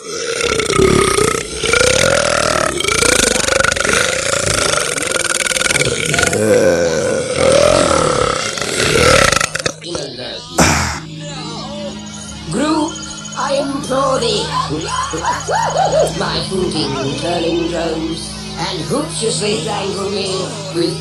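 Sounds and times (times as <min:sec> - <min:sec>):
belch: 0:00.0 - 0:11.1
laughter: 0:14.0 - 0:17.6
speech: 0:16.5 - 0:20.9.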